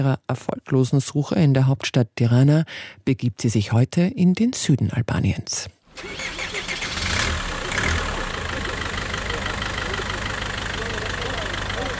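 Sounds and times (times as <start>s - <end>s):
speech: 0.0s - 6.5s
bus engine idling and pulling away: 6.0s - 11.9s.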